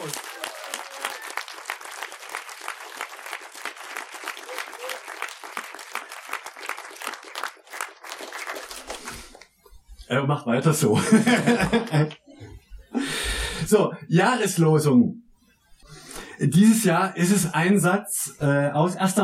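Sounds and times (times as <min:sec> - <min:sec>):
audience applause: 0:00.0 - 0:09.4
speech: 0:10.1 - 0:12.2, 0:13.7 - 0:15.2, 0:16.4 - 0:19.2
laughter: 0:11.0 - 0:12.6.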